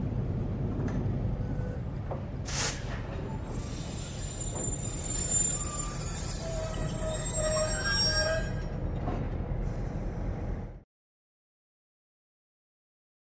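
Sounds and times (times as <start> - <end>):
train creaking: 0.3 - 10.6.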